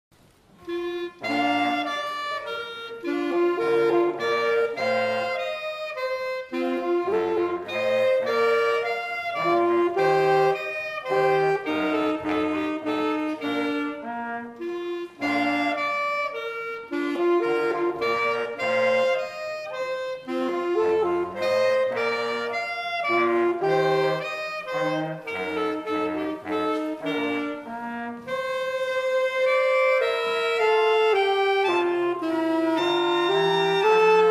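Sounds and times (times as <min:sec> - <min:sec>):
band quartet playing a minuet in concert: 0:00.6 - 0:34.2.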